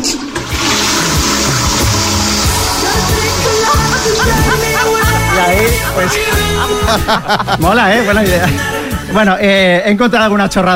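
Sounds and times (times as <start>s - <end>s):
Japanese Toto toilet flushing: 0.0s - 6.6s
laughter: 2.9s - 9.2s
speech: 5.4s - 10.7s.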